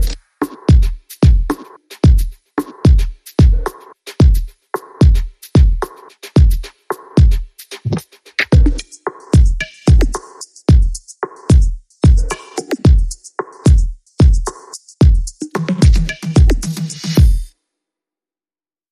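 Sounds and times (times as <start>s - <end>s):
reduced percussion: 0.0s - 17.5s.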